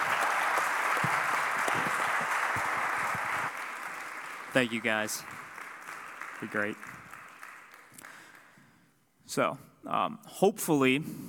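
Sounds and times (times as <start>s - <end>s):
audience applause: 0.0s - 8.6s
speech: 4.6s - 5.4s, 6.4s - 7.0s, 9.3s - 11.2s.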